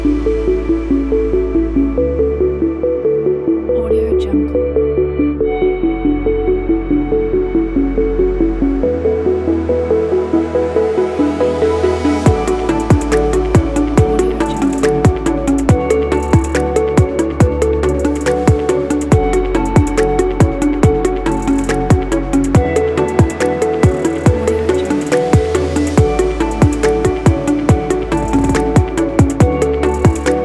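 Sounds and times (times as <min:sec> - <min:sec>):
ambient pop background music: 0:00.0 - 0:30.4.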